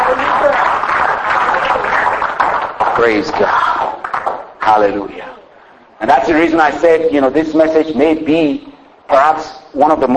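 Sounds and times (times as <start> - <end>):
congregation clapping after a morning sermon: 0.0 - 5.0
speech: 3.0 - 3.7, 4.7 - 5.2, 6.0 - 10.1.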